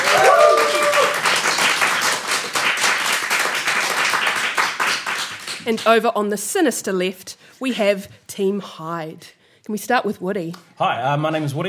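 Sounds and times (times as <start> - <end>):
audience applause: 0.0 - 5.7
speech: 5.7 - 11.6.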